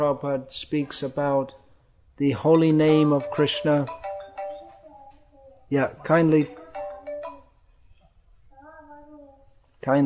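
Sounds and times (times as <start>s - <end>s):
speech: 0.0s - 1.6s, 2.2s - 4.0s, 5.7s - 6.6s, 9.8s - 10.0s
cell phone electronic ringtone: 3.2s - 4.8s, 6.6s - 7.5s.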